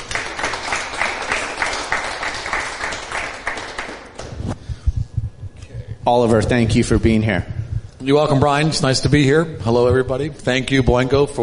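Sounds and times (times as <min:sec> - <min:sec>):
audience applause welcoming the XFL commissioner: 0:00.0 - 0:04.2
low thumps: 0:04.2 - 0:08.2
speech: 0:06.1 - 0:11.4.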